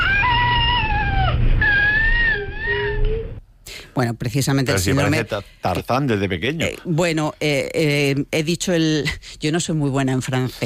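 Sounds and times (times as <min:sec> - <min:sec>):
baby with cri-du-chat syndrome crying high-pitched: 0:00.0 - 0:03.4
speech: 0:04.0 - 0:10.6.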